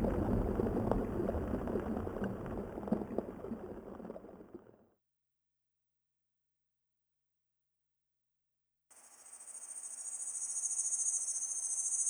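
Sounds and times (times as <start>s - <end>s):
water: 0.0s - 4.9s
cicadas: 8.9s - 12.0s.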